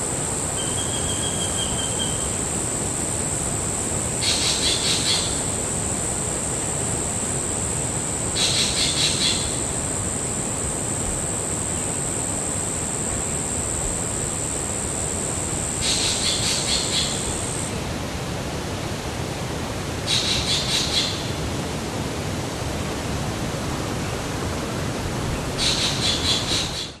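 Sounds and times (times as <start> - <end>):
forest insects: 0.0 - 26.9
strong wind in forest tree tops: 0.0 - 26.9
spangled drongo bird call: 0.6 - 2.3, 4.2 - 5.4, 8.4 - 9.6, 25.6 - 26.9.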